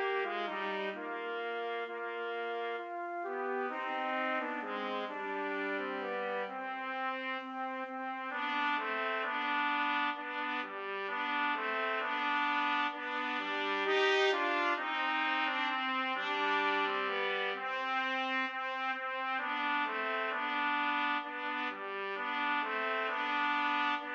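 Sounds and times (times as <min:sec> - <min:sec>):
siciliana trumpet duet: 0:00.0 - 0:24.1.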